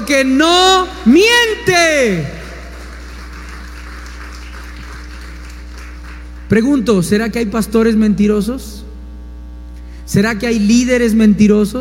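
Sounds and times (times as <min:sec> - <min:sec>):
low electrical hum: 0:00.0 - 0:11.7
speech: 0:00.1 - 0:02.4, 0:06.5 - 0:08.8, 0:10.1 - 0:11.7
audience applause: 0:02.4 - 0:06.5.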